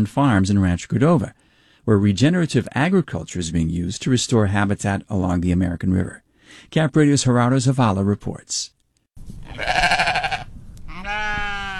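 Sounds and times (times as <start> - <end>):
speech: 0.0 - 8.8
sheep bleating: 9.5 - 11.7.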